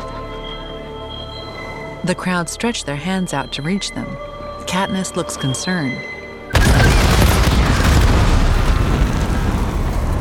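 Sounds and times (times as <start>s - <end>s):
speech: 2.0s - 6.1s
explosions in a crowd: 6.5s - 10.2s.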